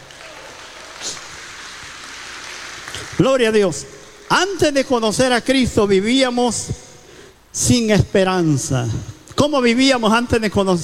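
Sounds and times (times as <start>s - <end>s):
audience applauding: 0.0s - 3.3s
speech: 3.2s - 6.8s, 7.6s - 10.8s.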